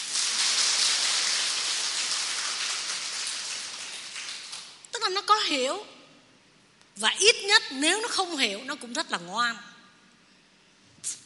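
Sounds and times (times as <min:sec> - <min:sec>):
round of applause: 0:00.0 - 0:04.8
speech: 0:05.0 - 0:06.0, 0:07.0 - 0:09.7.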